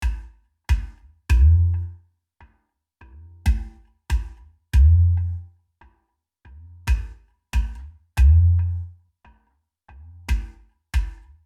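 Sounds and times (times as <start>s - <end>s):
hang drum bass: 0.0s - 1.8s, 3.5s - 5.3s, 6.9s - 8.7s, 10.3s - 11.2s.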